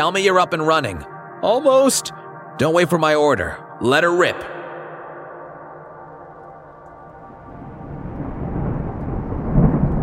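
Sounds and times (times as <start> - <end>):
speech: 0.0 - 4.6
thunder crack: 7.1 - 10.0.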